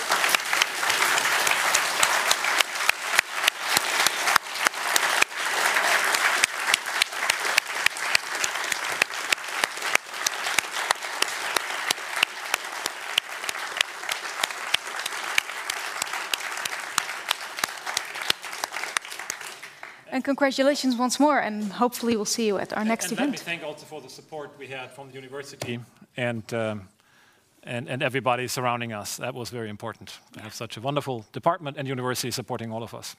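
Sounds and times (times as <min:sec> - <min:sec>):
audience round of applause: 0:00.0 - 0:20.1
speech: 0:20.2 - 0:26.9, 0:27.6 - 0:33.1.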